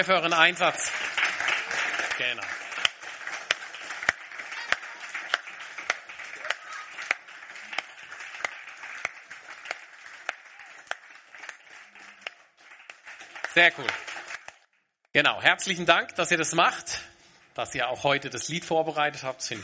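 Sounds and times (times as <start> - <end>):
speech: 0.0 - 1.2, 2.2 - 2.6, 13.6 - 14.1, 15.1 - 19.6
audience clapping: 0.0 - 14.8.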